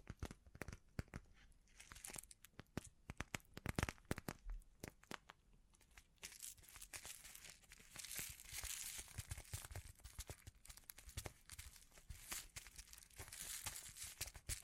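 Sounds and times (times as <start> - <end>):
crisp clicks, crinkles and taps: 0.0 - 14.6
bright dense rustling crackle: 1.3 - 2.6, 5.8 - 14.6
sharp snaps: 2.5 - 5.4.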